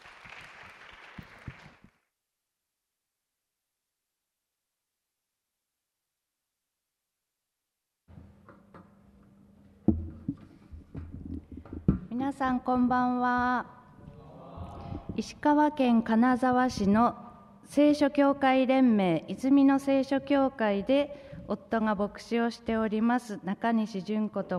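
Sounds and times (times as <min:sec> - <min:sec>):
audience applause welcoming a speaker: 0:00.0 - 0:02.0
speech: 0:12.3 - 0:13.8, 0:15.2 - 0:24.5.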